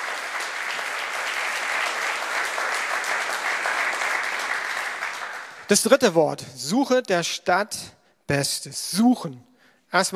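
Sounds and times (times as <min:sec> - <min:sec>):
audience clapping: 0:00.0 - 0:05.9
speech: 0:05.7 - 0:10.1.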